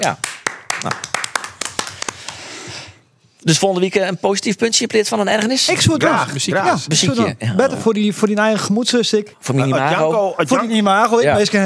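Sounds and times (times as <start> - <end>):
speech: 0.0 - 1.1, 3.4 - 11.6
applause for a boy: 0.0 - 2.6.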